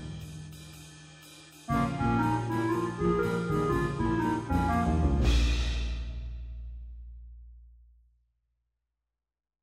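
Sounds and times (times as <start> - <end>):
blues music: 1.7 - 5.8.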